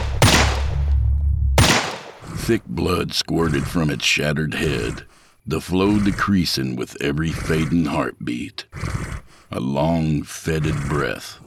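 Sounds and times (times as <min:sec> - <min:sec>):
gunshots: 0:00.0 - 0:01.0, 0:01.6 - 0:02.5
low rumble: 0:00.0 - 0:02.4
speech: 0:02.5 - 0:11.4.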